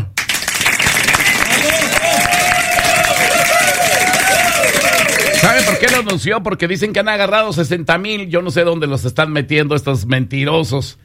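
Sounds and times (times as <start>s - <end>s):
audience applause: 0.2s - 6.1s
speech: 5.9s - 11.0s.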